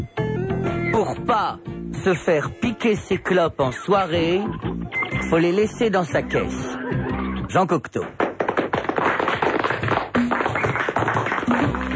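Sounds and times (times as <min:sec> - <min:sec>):
speech: 0:01.0 - 0:08.2
applause: 0:08.2 - 0:11.9.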